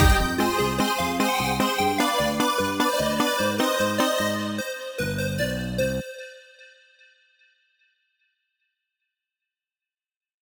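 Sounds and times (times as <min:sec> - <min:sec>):
instrumental music: 0:00.0 - 0:05.7.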